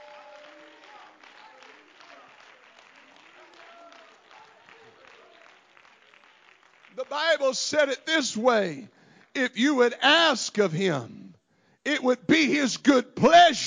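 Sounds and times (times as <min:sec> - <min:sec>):
audience hand clapping: 0:00.0 - 0:09.6
speech: 0:07.0 - 0:11.2, 0:11.8 - 0:13.6.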